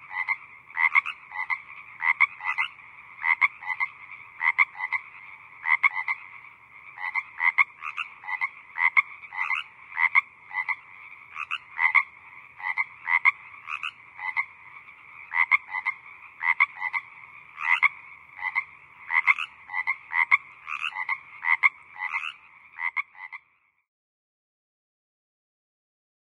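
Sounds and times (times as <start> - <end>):
several frogs croaking in chorus: 0.0 - 23.9.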